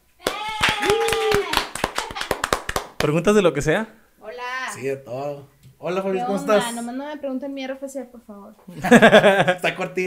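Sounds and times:
person cheering: 0:00.2 - 0:02.5
audience clapping: 0:00.2 - 0:03.2
speech: 0:03.0 - 0:10.0
laughter: 0:08.7 - 0:09.8.

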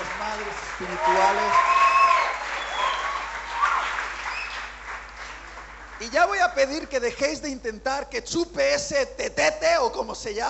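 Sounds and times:
audience applause: 0:00.0 - 0:06.6
speech: 0:00.8 - 0:01.8, 0:06.0 - 0:10.4.

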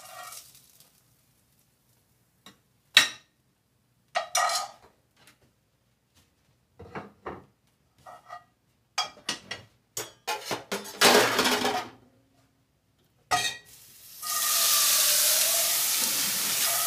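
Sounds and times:
steady hiss: 0:00.0 - 0:02.2, 0:13.7 - 0:16.8
knocks and clatters of cooking in a kitchen: 0:04.2 - 0:05.5, 0:06.8 - 0:12.0.

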